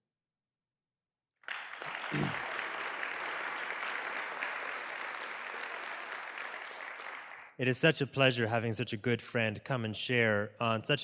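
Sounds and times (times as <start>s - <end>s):
audience applause: 1.4s - 7.5s
speech: 2.1s - 2.5s, 7.6s - 11.0s.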